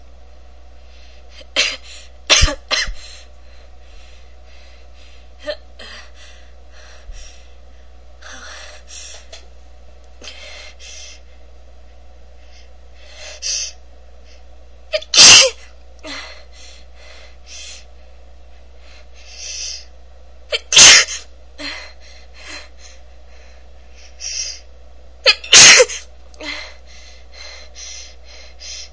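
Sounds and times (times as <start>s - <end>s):
woman coughing: 1.4s - 3.0s, 15.0s - 15.7s, 20.5s - 21.3s, 25.3s - 26.1s.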